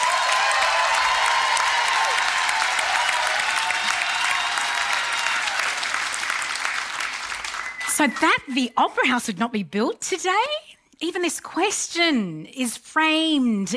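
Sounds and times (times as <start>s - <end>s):
audience applause welcoming an author who wrote about the Sydney Opera House: 0.0s - 8.2s
speech: 8.0s - 13.7s.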